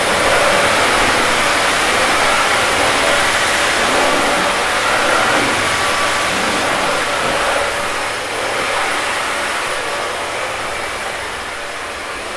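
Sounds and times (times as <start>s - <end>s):
vacuum cleaner: 0.0s - 12.3s.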